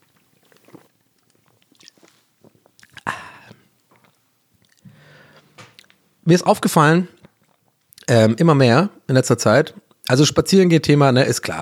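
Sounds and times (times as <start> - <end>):
person sipping a drink: 0.1 - 6.0
speech: 6.3 - 7.2, 8.1 - 11.5.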